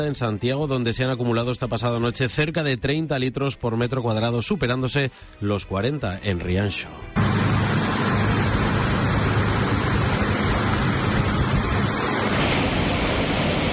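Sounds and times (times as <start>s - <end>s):
speech: 0.0s - 7.4s
strong wind lashing large trees: 7.2s - 13.7s.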